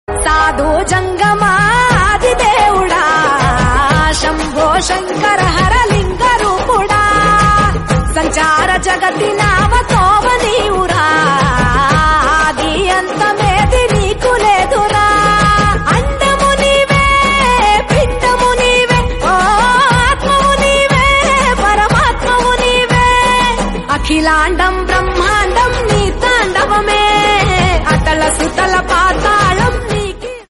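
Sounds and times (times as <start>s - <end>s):
Telugu devotional song: 0.1s - 30.4s.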